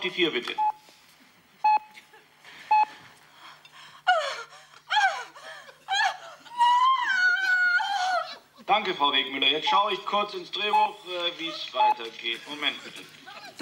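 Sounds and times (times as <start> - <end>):
speech: 0.0 - 0.8, 8.8 - 13.6
woman panting and moaning lustfully: 3.2 - 8.6
laughter: 4.1 - 8.9, 11.1 - 13.6.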